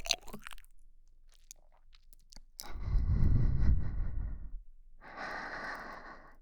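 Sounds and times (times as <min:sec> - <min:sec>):
slow breathing: 0:02.6 - 0:06.4.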